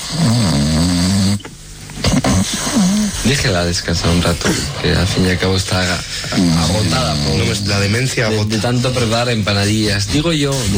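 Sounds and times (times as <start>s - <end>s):
woman snoring: 0.0s - 3.3s, 6.3s - 7.8s
speech: 0.1s - 0.4s, 3.2s - 10.7s.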